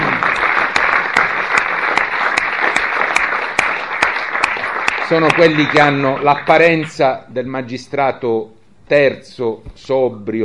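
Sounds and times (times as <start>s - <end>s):
audience applause: 0.0s - 6.8s
speech: 5.1s - 10.4s.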